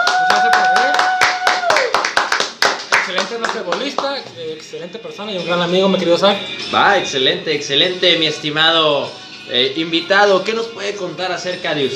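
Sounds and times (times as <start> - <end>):
audience applause: 0.0 - 4.0
speech: 4.7 - 11.9.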